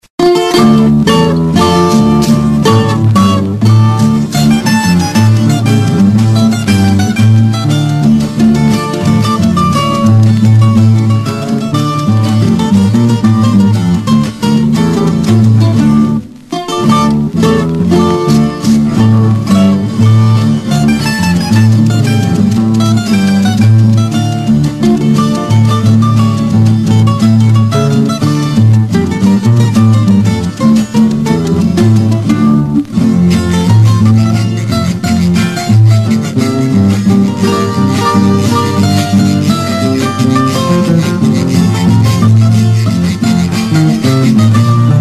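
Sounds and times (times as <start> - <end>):
bambuco instrumental music: 0.0 - 44.9.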